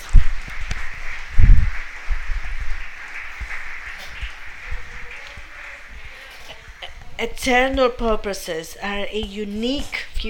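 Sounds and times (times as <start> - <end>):
audience applause: 0.0 - 7.1
speech: 7.2 - 10.2.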